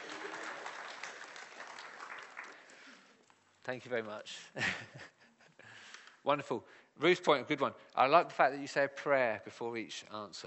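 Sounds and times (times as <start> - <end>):
audience applause: 0.0 - 3.1
speech: 3.7 - 5.2, 6.2 - 10.4.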